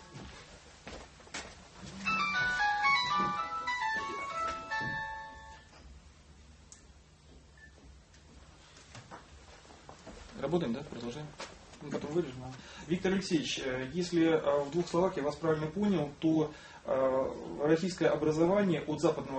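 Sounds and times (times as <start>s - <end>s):
mobile phone ringtone melody: 2.0s - 5.7s
speech: 10.5s - 19.3s.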